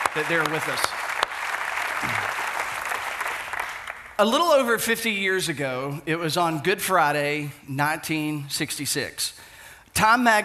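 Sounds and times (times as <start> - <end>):
audience applause welcoming guests: 0.0 - 4.2
speech: 0.2 - 1.0, 4.2 - 10.4.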